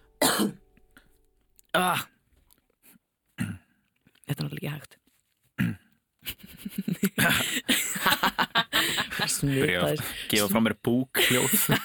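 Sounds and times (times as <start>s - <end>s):
harsh cough: 0.2s - 0.6s, 5.6s - 5.9s
speech: 0.4s - 0.6s, 1.8s - 2.1s, 4.4s - 5.0s, 6.8s - 11.8s
laughter: 6.2s - 10.5s, 11.2s - 11.8s.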